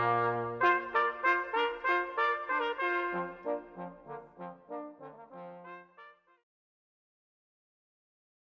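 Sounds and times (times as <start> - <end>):
brass fanfare: 0.0 - 6.4.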